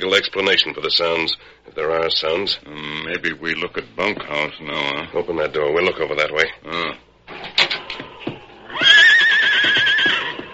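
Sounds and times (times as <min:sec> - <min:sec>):
speech: 0:00.0 - 0:07.4
horse neighing: 0:07.7 - 0:10.5.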